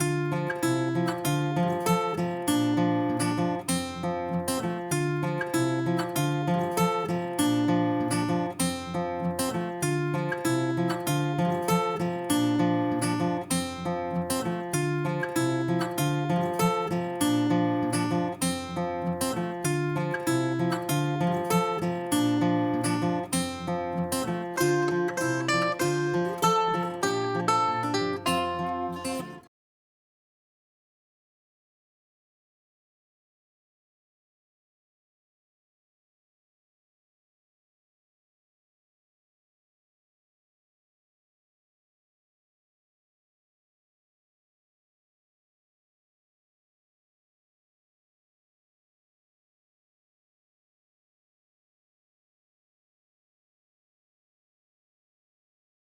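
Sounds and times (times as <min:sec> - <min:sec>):
instrumental music: 0:00.0 - 0:29.5.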